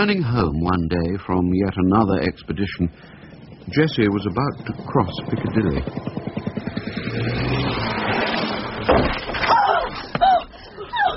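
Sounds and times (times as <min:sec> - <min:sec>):
speech: 0:00.0 - 0:06.4, 0:07.2 - 0:07.5
car engine revving: 0:02.0 - 0:09.3
car hitting a pedestrian with a heavy thud: 0:08.8 - 0:09.4.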